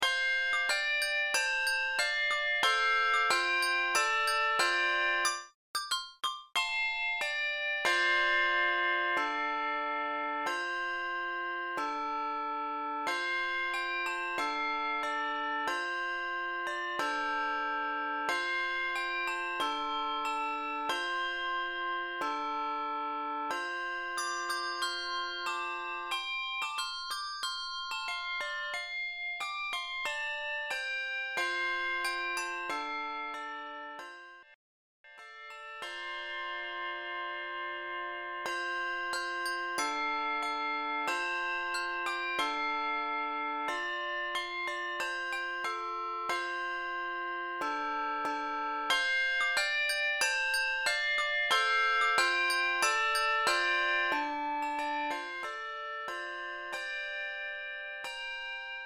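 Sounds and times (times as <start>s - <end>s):
handbells playing an anthem: 0.0s - 34.5s, 35.1s - 58.8s.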